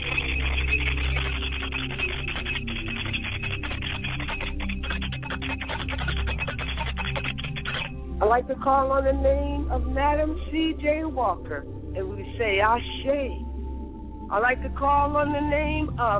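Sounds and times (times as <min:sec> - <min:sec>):
bell being rung: 0:00.0 - 0:07.9
speech: 0:08.3 - 0:13.4, 0:14.3 - 0:16.1.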